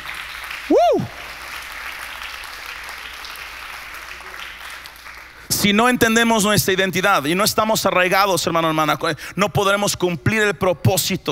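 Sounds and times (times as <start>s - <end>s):
audience applauding: 0.0s - 6.2s
speech: 0.7s - 1.1s, 5.6s - 11.3s.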